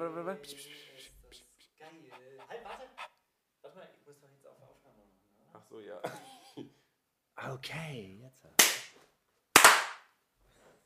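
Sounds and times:
speech: 0.0s - 1.1s, 5.6s - 6.4s, 7.4s - 8.6s
laughter: 1.9s - 3.1s
nearly synchronized hand claps: 8.6s - 10.1s.

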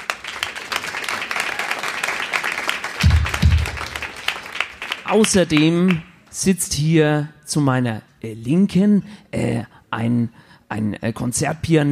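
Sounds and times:
audience applause: 0.0s - 6.0s
heavy low thumps: 3.0s - 3.9s
speech: 5.1s - 11.9s.

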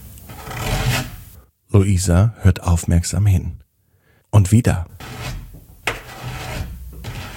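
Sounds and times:
scratching on a wooden door: 0.3s - 1.2s, 5.0s - 7.3s
speech: 1.8s - 3.7s, 4.3s - 5.1s.

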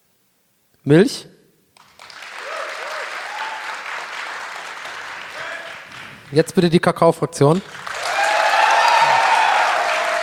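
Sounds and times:
speech: 0.8s - 1.3s, 6.3s - 7.9s
audience applause: 1.8s - 6.8s, 7.4s - 10.2s.

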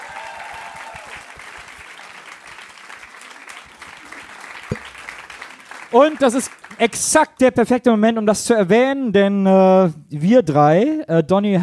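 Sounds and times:
audience applause: 0.0s - 6.8s
speech: 5.9s - 11.6s.

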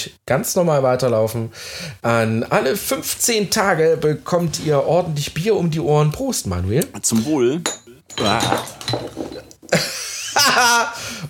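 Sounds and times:
speech: 0.0s - 11.2s
person's voice: 2.1s - 8.7s
empty glass bottle knocked over: 7.6s - 9.8s
laughter: 9.8s - 11.0s.

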